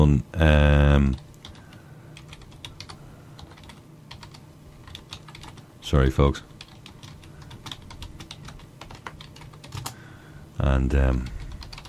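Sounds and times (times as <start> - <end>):
speech: 0.0 - 1.3, 5.9 - 6.5, 10.6 - 11.4
typing on a computer keyboard: 1.2 - 5.6, 6.6 - 10.0, 11.0 - 11.8.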